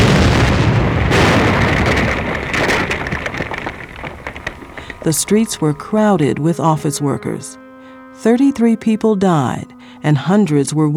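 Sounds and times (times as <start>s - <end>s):
dynamite bomb explosion on Wall Street in Manhattan: 0.0s - 6.8s
speech: 5.0s - 7.6s, 8.2s - 10.9s.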